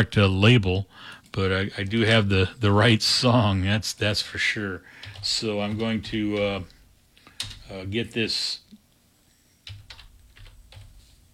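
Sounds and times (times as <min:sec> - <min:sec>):
speech: 0:00.0 - 0:06.8, 0:07.7 - 0:08.7
typing on a computer keyboard: 0:05.0 - 0:06.7, 0:07.4 - 0:07.7, 0:09.6 - 0:11.0.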